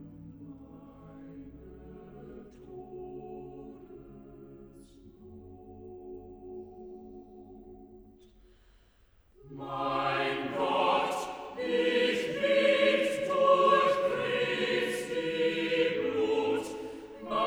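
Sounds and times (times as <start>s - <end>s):
choir singing: 0.7s - 5.0s, 9.4s - 17.4s.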